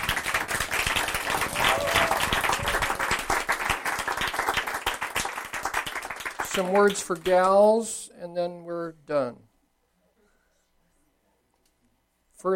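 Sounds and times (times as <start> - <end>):
audience clapping: 0.0 - 7.8
speech: 6.6 - 9.5, 12.4 - 12.5.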